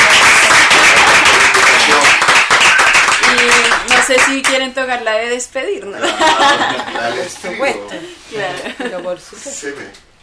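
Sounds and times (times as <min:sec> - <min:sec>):
applause: 0:00.0 - 0:04.6
speech: 0:04.1 - 0:10.1
laughter: 0:06.0 - 0:09.2.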